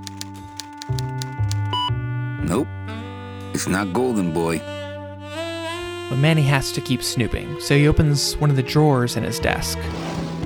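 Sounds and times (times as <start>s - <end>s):
typing on a computer keyboard: 0.0s - 1.9s
speech: 2.5s - 3.0s, 3.6s - 4.8s, 6.1s - 10.3s.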